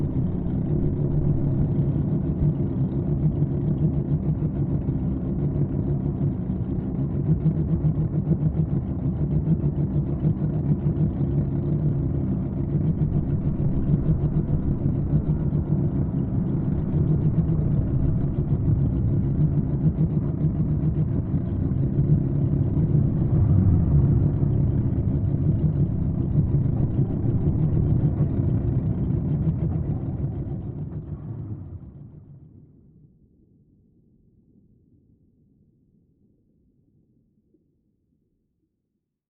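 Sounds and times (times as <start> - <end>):
boat motor engine idling and revving: 0.0 - 32.3
underwater ambience: 10.7 - 33.6.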